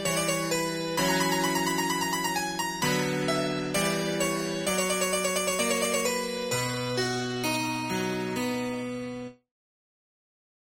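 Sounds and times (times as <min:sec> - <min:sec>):
harpsichord piece: 0:00.0 - 0:09.4.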